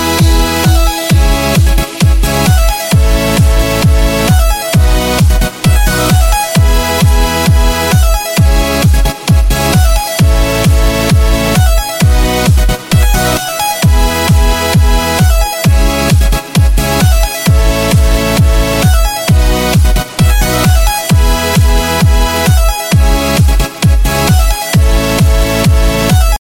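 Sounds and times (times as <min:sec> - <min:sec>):
electronic theme music: 0:00.0 - 0:26.3.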